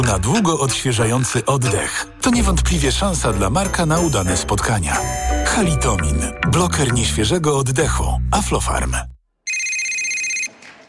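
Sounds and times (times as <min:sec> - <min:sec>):
speech: 0:00.0 - 0:09.2
telephone ringing: 0:09.4 - 0:10.6.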